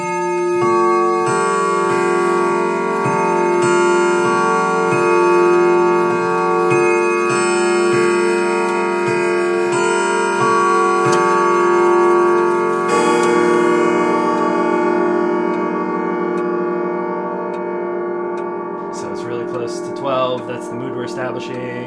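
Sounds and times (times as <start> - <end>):
clock ticking: 0.0 - 21.8.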